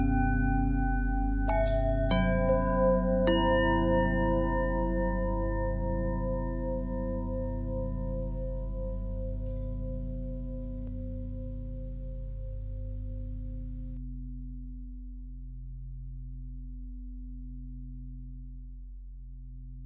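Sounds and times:
long bell harmonic twist: 0.0 - 14.0.

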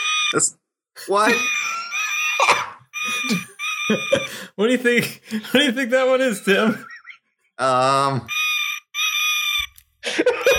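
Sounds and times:
speech: 0.3 - 1.7, 2.4 - 6.9, 7.6 - 8.4
red panda call: 1.3 - 4.4, 8.2 - 9.8
laughter: 1.3 - 7.3, 10.0 - 10.5.

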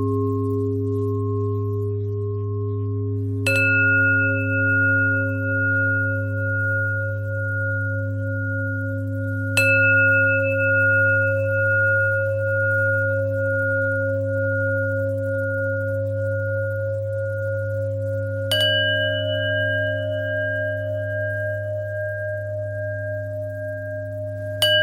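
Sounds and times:
bells: 0.0 - 24.8.

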